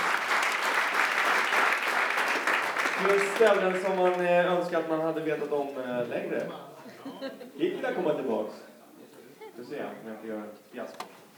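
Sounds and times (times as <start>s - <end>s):
audience applause: 0.0s - 5.8s
speech: 3.0s - 8.7s, 9.6s - 11.1s
laughter: 6.7s - 8.4s.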